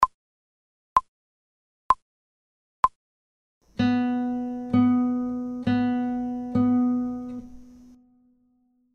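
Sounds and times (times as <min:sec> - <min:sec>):
slow guitar: 0:03.7 - 0:08.5.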